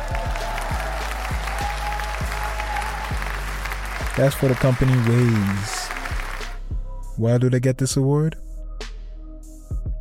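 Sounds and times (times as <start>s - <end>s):
round of applause: 0.0s - 6.6s
speech: 4.2s - 5.8s, 7.2s - 8.4s.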